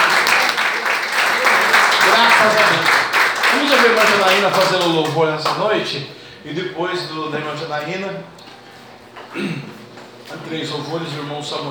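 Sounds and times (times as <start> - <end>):
audience applause: 0.0 - 5.6
speech: 3.5 - 8.5, 9.3 - 9.7, 10.3 - 11.7.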